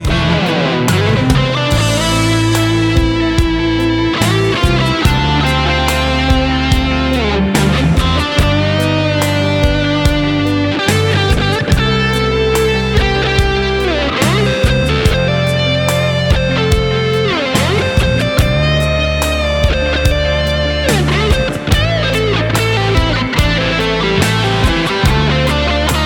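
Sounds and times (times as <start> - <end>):
guitar solo: 0.0 - 26.0.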